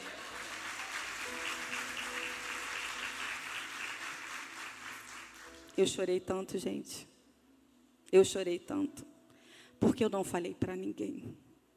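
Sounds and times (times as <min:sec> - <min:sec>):
crowd applause: 0:00.0 - 0:05.6
speech: 0:05.8 - 0:07.1, 0:08.1 - 0:09.1, 0:09.8 - 0:11.4.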